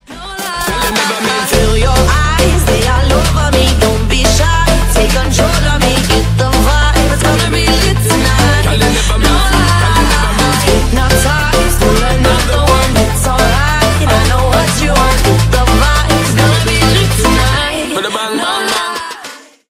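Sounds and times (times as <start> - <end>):
dancehall remix: 0.0 - 19.6.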